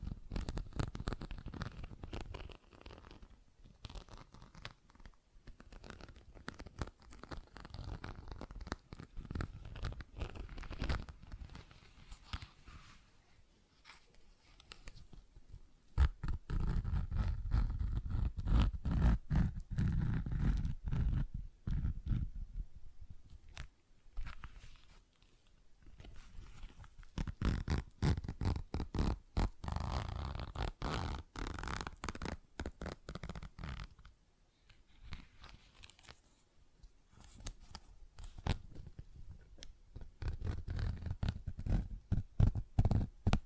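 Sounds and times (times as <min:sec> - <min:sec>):
crackly scratching: 0:00.0 - 0:13.1, 0:13.7 - 0:22.4, 0:23.2 - 0:36.5, 0:37.1 - 0:43.4.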